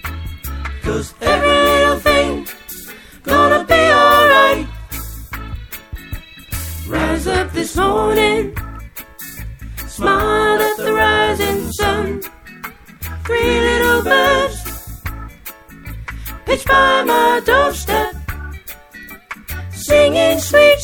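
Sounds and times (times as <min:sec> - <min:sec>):
soprano singing: 0:00.8 - 0:02.6, 0:03.2 - 0:04.8, 0:06.9 - 0:08.6, 0:09.9 - 0:12.3, 0:13.2 - 0:14.8, 0:16.5 - 0:18.2, 0:19.8 - 0:20.8.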